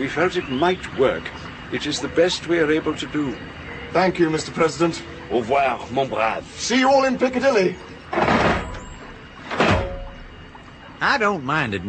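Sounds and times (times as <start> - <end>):
speech: 0.0 - 8.5, 11.0 - 11.8
hatch of a submarine-type contraption shut and locked with heavy thuds: 9.5 - 10.4.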